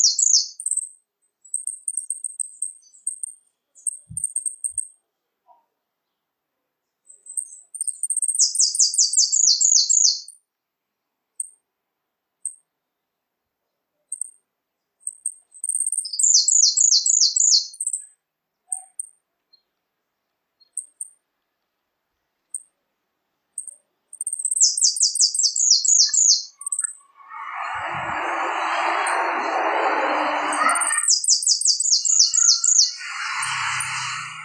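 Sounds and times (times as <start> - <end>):
Canario da Terra singing retinido song: 0.0 - 4.8, 7.1 - 10.4, 15.1 - 18.1, 23.6 - 34.4.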